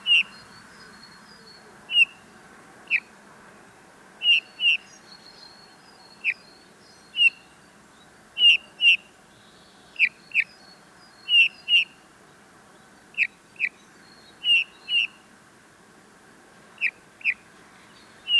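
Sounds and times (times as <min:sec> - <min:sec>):
Eurasian bullfinch Pyrrhula pyrrhula calling with soft plaintive piping notes: 0:00.0 - 0:02.2, 0:04.2 - 0:05.0, 0:06.1 - 0:07.6, 0:08.4 - 0:09.1, 0:09.9 - 0:12.0, 0:13.2 - 0:15.3, 0:16.8 - 0:18.3.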